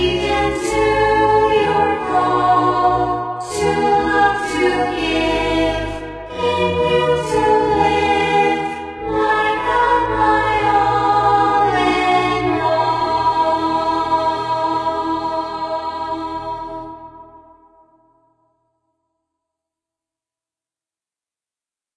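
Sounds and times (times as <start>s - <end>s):
choir singing: 0.0s - 17.9s.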